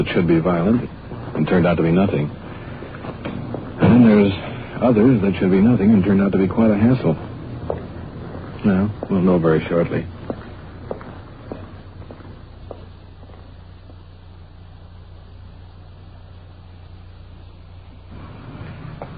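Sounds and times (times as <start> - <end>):
speech: 0.0 - 2.4, 4.0 - 7.3, 8.6 - 10.1
footsteps walking up the path to a small English-style cottage: 0.0 - 14.4
low steady hum: 0.0 - 19.1.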